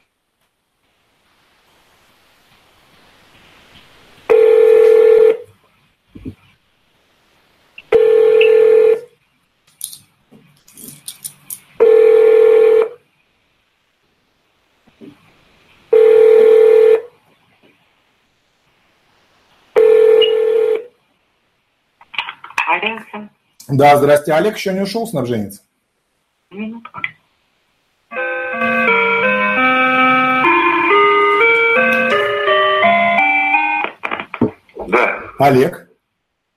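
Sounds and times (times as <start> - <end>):
outgoing call ringback tone: 4.3 - 5.5, 7.9 - 9.1, 11.8 - 13.0, 15.9 - 17.1, 19.8 - 20.9, 28.1 - 33.9
speech: 23.2 - 25.7, 35.4 - 35.8.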